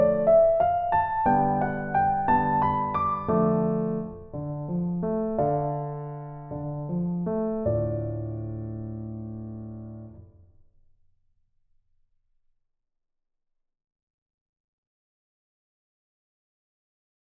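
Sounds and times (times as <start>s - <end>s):
solo piano etude: 0.0s - 10.5s.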